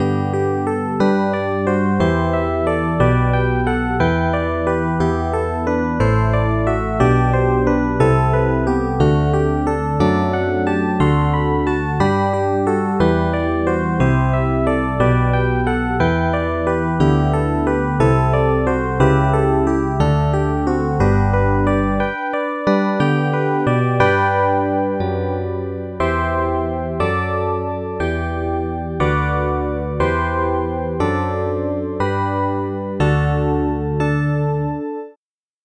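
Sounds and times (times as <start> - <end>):
electric piano: 0.0 - 35.2.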